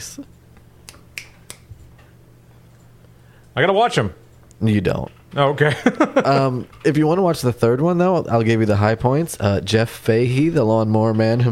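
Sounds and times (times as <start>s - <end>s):
speech: 0.0s - 0.4s, 3.6s - 11.5s
finger snapping: 0.8s - 1.7s
laughter: 5.6s - 6.6s.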